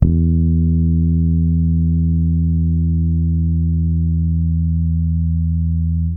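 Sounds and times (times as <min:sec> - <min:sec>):
Pedulla bass guitar playing E harmonic: 0:00.0 - 0:06.1.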